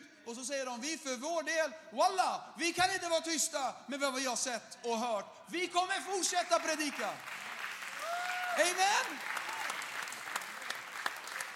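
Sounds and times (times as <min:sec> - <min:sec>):
speech: 0:00.3 - 0:07.4, 0:08.6 - 0:09.3
audience applause: 0:06.6 - 0:11.5.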